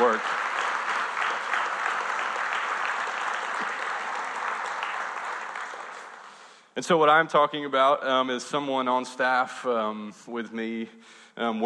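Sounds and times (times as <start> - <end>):
audience applause: 0.0 - 6.5
speech: 6.8 - 11.6.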